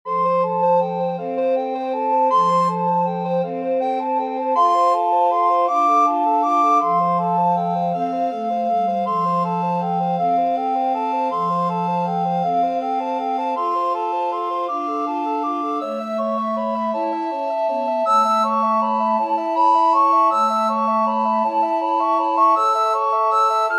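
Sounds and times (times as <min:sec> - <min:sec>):
recorder quartet: 0:00.1 - 0:23.7.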